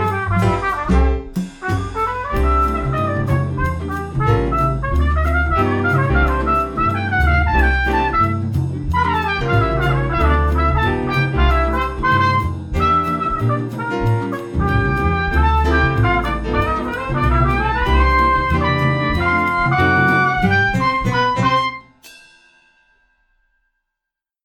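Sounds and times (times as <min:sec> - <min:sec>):
latin trumpet: 0:00.0 - 0:22.2.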